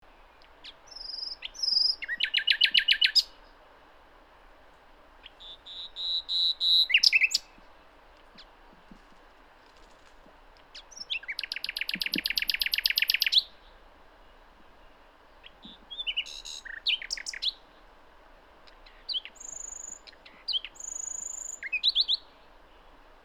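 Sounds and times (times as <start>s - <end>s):
common nightingale singing: 0.1s - 3.5s, 5.2s - 7.6s, 10.7s - 13.8s, 14.8s - 17.7s, 18.7s - 22.9s.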